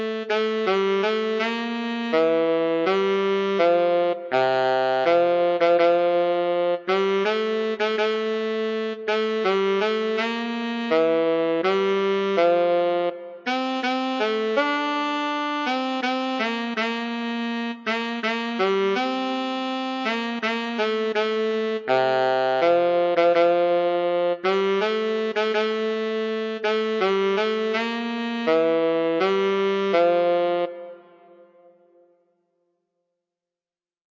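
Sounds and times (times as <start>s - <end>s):
solo tenor saxophone: 0.0s - 32.2s.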